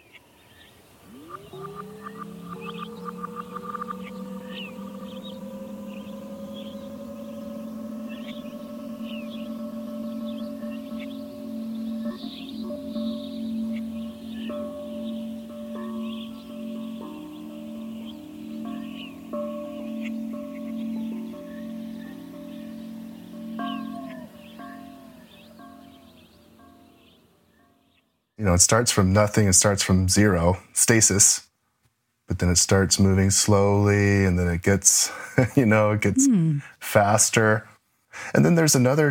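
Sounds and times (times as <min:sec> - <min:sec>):
pitch-bending wind chime sample: 0:01.0 - 0:28.0
speech: 0:28.4 - 0:31.5, 0:32.4 - 0:39.1.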